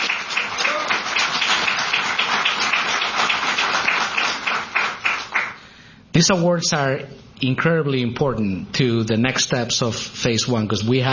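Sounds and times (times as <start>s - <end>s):
audience applause: 0.0s - 5.6s
speech: 6.2s - 11.1s.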